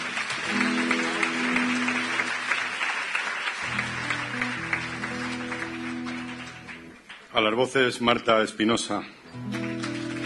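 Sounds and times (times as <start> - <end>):
audience applause: 0.0 - 7.4, 9.4 - 10.2
speech: 7.4 - 9.2.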